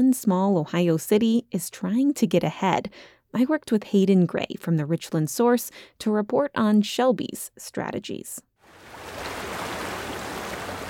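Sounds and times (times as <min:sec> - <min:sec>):
speech: 0:00.0 - 0:08.5
rushing floodwater of the Black Fork of the Mohican River in Ohio: 0:08.7 - 0:10.8.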